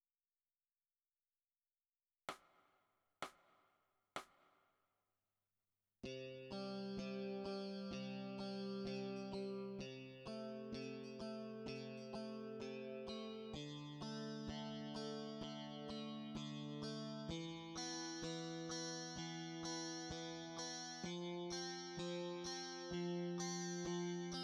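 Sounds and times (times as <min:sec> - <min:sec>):
electric guitar: 0:06.0 - 0:24.4.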